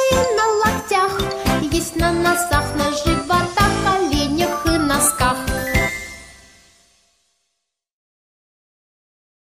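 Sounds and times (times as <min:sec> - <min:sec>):
children's songs: 0:00.0 - 0:06.4.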